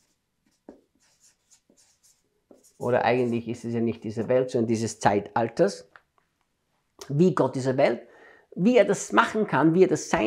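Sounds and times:
writing on a board: 0.0s - 3.7s
speech: 2.8s - 5.9s, 7.1s - 10.2s.

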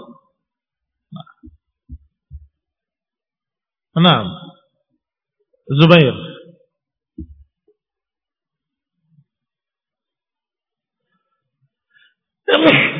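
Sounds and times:
speech: 4.0s - 4.4s, 5.7s - 6.2s, 12.5s - 12.8s
sneeze: 12.5s - 12.9s.

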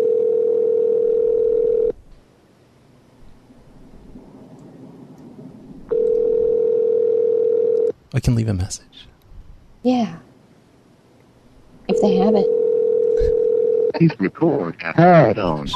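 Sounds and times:
telephone line ringing tone: 0.0s - 2.0s, 5.9s - 7.9s, 11.9s - 13.9s
speech: 8.2s - 9.1s, 9.8s - 10.3s, 12.0s - 12.6s, 14.0s - 15.7s.

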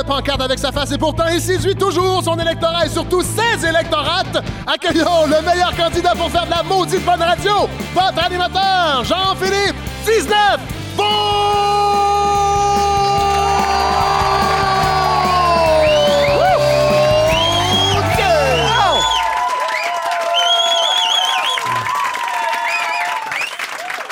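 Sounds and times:
speech: 0.0s - 11.7s
music playing: 0.0s - 19.4s
live radio show audience shouts and cheers: 12.6s - 23.4s
live radio show audience whistling: 13.2s - 24.0s.

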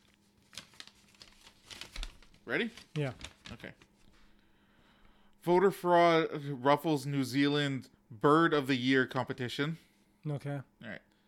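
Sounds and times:
paper rustling as slowly unfolded: 0.0s - 4.2s
speech: 2.5s - 3.9s, 5.4s - 11.1s.

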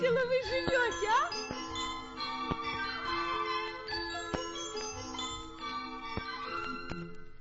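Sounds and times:
small bells tinkling: 0.0s - 6.4s.

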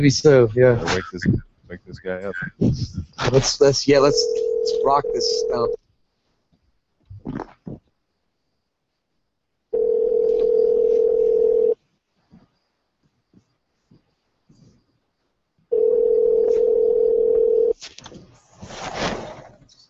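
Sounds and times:
speech: 0.0s - 5.8s, 7.2s - 7.8s
telephone ringback tones: 4.1s - 5.8s, 9.7s - 11.8s, 15.7s - 17.8s.

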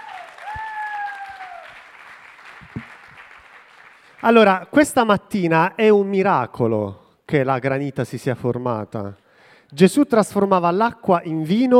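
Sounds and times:
audience applause: 0.0s - 4.2s
speech: 4.2s - 11.7s.

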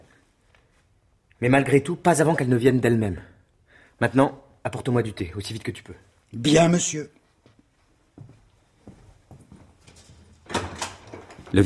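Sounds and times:
speech: 1.4s - 3.4s, 4.0s - 7.2s
door opening: 9.8s - 11.6s.

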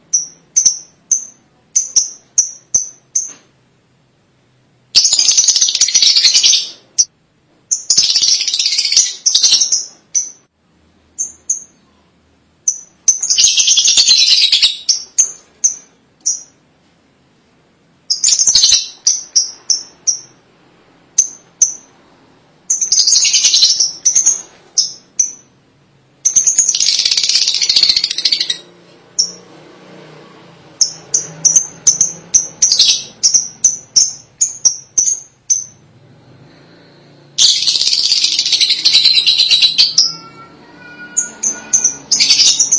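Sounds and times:
lovebird chattering calls: 5.0s - 7.1s, 7.7s - 10.4s, 12.6s - 16.5s, 18.1s - 20.4s, 22.7s - 25.5s, 26.2s - 28.6s, 30.8s - 35.8s, 37.4s - 40.4s, 41.0s - 42.7s.

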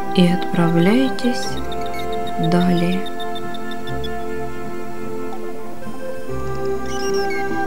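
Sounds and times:
speech: 0.2s - 1.7s, 2.4s - 3.2s
dolphin whistles and clicks: 1.4s - 4.4s, 6.6s - 7.6s.

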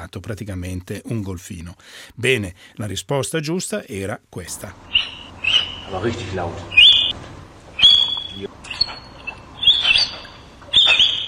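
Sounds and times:
speech: 0.0s - 5.2s, 5.9s - 6.8s
orangutan whistling at Heidelberg zoo: 4.8s - 11.2s.

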